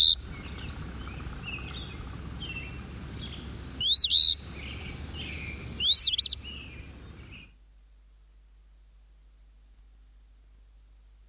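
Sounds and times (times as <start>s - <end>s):
eastern phoebe singing: 0.0s - 7.6s.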